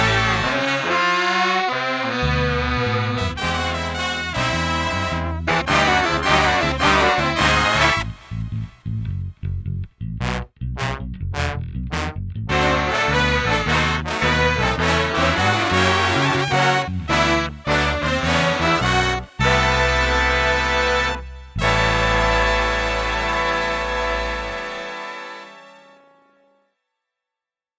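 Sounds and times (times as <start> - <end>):
street brass ensemble playing without drums: 0.0 - 8.8, 10.2 - 26.4.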